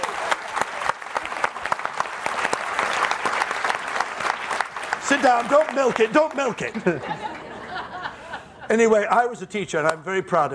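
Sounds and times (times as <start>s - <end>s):
audience applause: 0.0s - 8.0s
speech: 5.1s - 7.3s, 8.7s - 10.5s
laughter: 6.1s - 9.0s.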